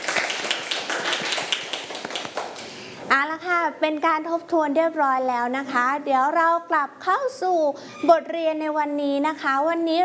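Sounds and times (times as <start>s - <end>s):
children clapping: 0.0s - 2.7s
speech: 3.1s - 10.0s.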